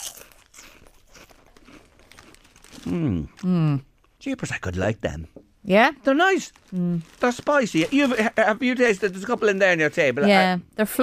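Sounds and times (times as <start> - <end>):
crisps bag crinkling: 0.0 - 3.5, 6.3 - 10.1
spicy Tato Hearts crisps crunching: 0.0 - 3.6, 6.1 - 10.2
speech: 2.9 - 11.0.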